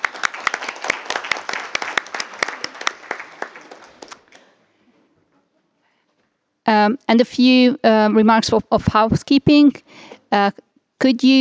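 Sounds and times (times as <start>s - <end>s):
group applauding in conference room: 0.0s - 4.6s
speech: 6.8s - 11.3s.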